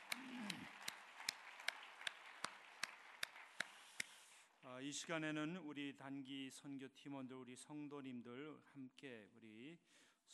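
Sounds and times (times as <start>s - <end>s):
hand clapping: 0.0s - 4.4s
speech: 4.8s - 10.3s.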